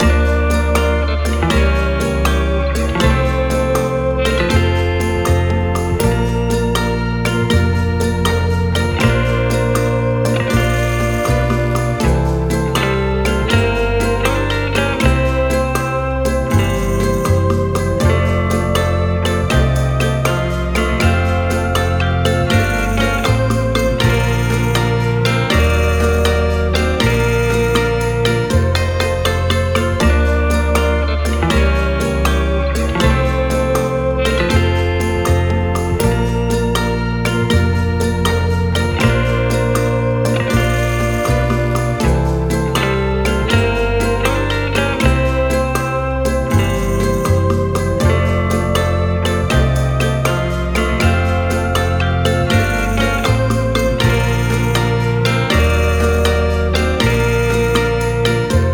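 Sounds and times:
dreamy music: 0.0s - 58.7s.

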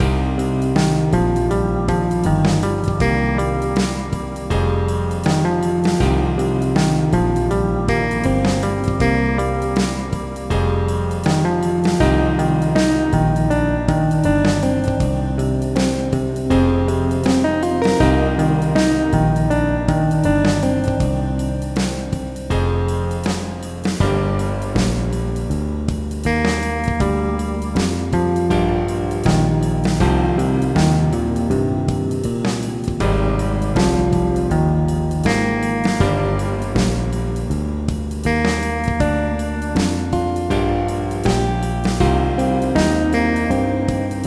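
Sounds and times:
dark jazz music: 0.0s - 44.2s.

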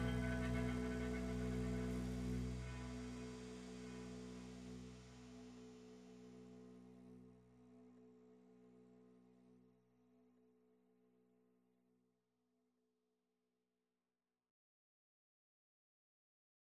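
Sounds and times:
minimal exploration music: 0.0s - 7.6s.

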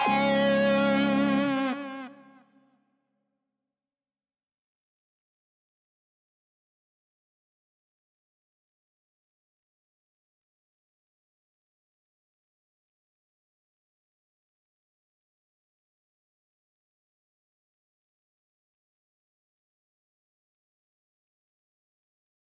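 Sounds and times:
doom music mix stem layer: 0.0s - 1.8s.

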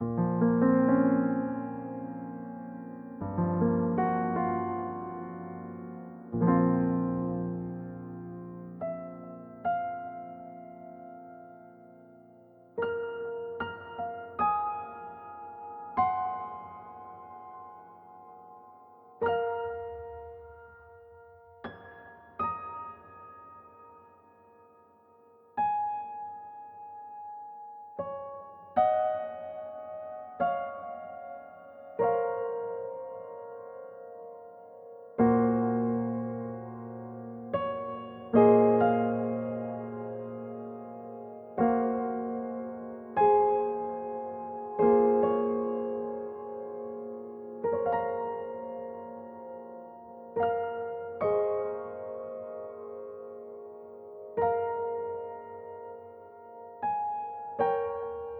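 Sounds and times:
piano phrase: 0.0s - 58.3s.

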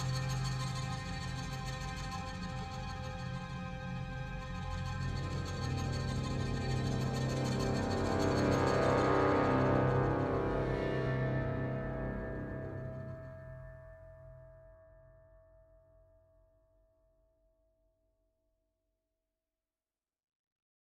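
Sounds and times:
ambient music: 0.0s - 14.0s.

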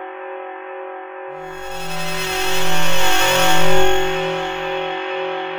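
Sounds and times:
synth ambient music: 1.5s - 5.5s.

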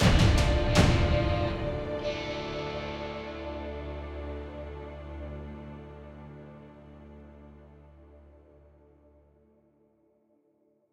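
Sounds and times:
music stinger: 0.0s - 6.6s.

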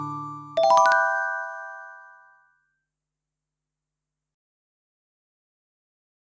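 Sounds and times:
experimental rainbow bell: 0.6s - 2.4s.

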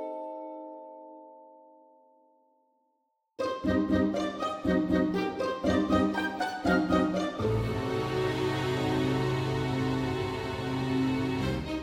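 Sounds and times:
success sound: 3.4s - 11.6s.

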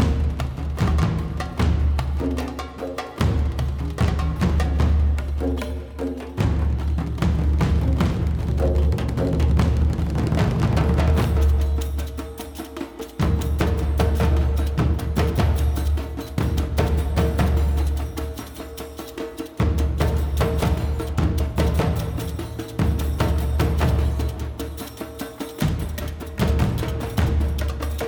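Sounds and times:
percussion loop: 0.0s - 28.0s.

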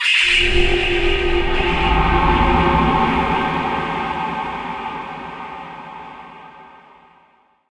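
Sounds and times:
creepy stinger: 0.0s - 7.2s.

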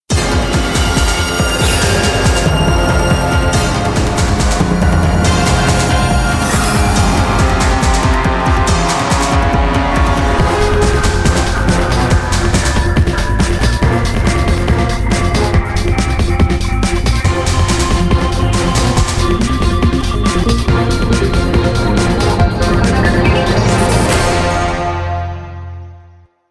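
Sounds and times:
short action music: 0.1s - 26.1s.

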